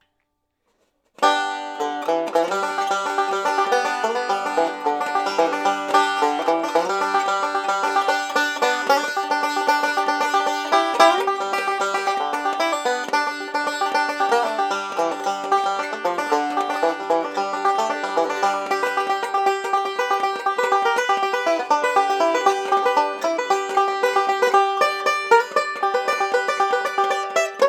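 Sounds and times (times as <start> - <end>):
banjo: 0.8 - 27.6.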